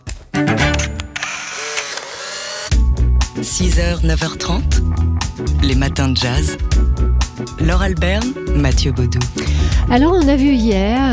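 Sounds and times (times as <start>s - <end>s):
camera shutters clicking: 0.6s - 2.7s
camera mechanical winding: 0.7s - 2.7s
speech: 3.4s - 11.1s.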